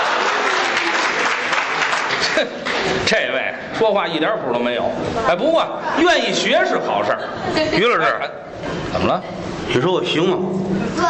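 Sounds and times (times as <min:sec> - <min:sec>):
laughter: 0:00.0 - 0:03.1, 0:05.8 - 0:09.0
thunderous audience applause: 0:00.0 - 0:03.1
speech: 0:02.4 - 0:11.0.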